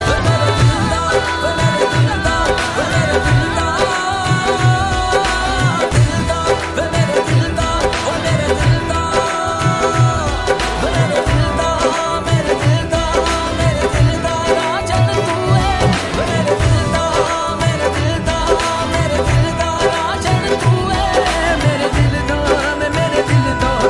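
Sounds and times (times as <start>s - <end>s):
instrumental background music: 0.0s - 23.8s.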